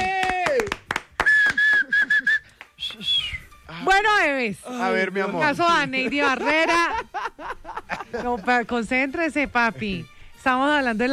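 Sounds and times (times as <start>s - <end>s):
applause: 0.0s - 3.0s
speech: 4.0s - 11.1s
laughter: 5.5s - 8.7s.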